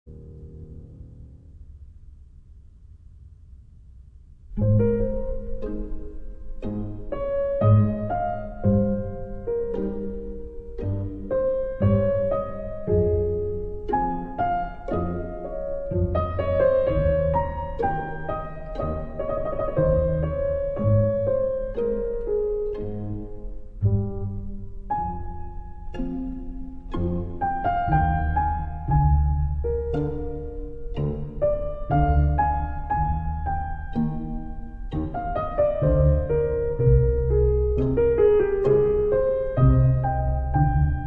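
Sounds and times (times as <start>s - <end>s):
piano: 0.0s - 41.0s
chamber orchestra: 4.6s - 41.0s.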